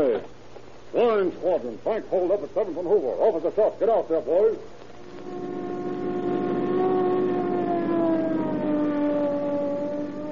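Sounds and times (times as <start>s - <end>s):
speech: 0.9s - 5.4s
police car siren: 5.0s - 10.3s.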